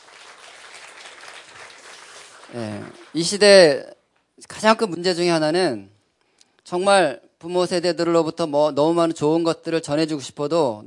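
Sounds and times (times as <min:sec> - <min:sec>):
children in a lecture audience clapping: 0:00.0 - 0:03.2
speech: 0:02.5 - 0:05.9, 0:06.6 - 0:10.8.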